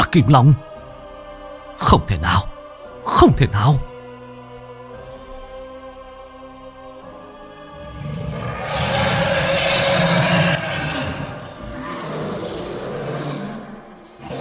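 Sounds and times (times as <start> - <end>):
speech: 0.1 - 0.7, 1.8 - 2.5, 3.1 - 3.9
monstrous creatures roaring while fighting: 7.6 - 14.3.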